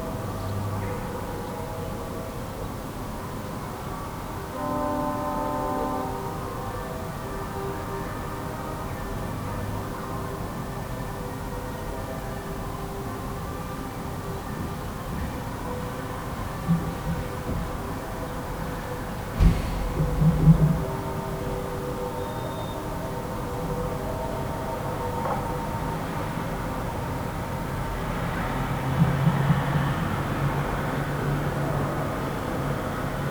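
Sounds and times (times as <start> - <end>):
sirens: 0.2 - 33.2
distant horns: 4.3 - 9.8, 14.9 - 33.2.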